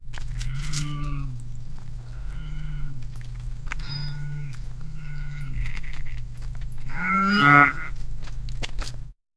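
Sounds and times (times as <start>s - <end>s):
cow turning on a farm: 0.0s - 9.2s.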